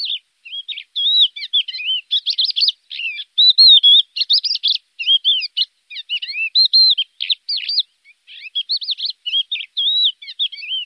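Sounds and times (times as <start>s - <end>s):
lark song: 0.0s - 10.8s.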